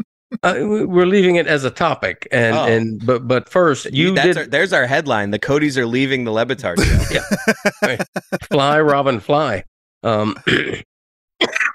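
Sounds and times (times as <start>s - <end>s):
speech: 0.0s - 11.7s
man coughing: 6.8s - 8.3s
laughter: 6.8s - 9.2s.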